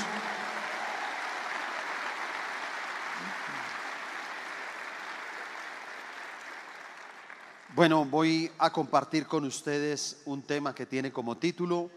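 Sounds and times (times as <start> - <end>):
crowd applauding: 0.0 - 8.5
speech: 7.8 - 11.9.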